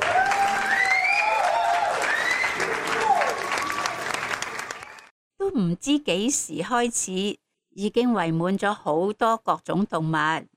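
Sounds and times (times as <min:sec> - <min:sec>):
whistle-like cheers: 0:00.0 - 0:04.1
crowd applauding: 0:00.0 - 0:05.1
speech: 0:05.6 - 0:10.5.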